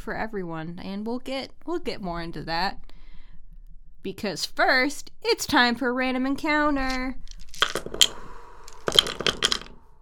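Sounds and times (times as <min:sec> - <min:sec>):
speech: 0:00.0 - 0:02.9, 0:04.0 - 0:07.2
dice rolling: 0:06.9 - 0:10.0.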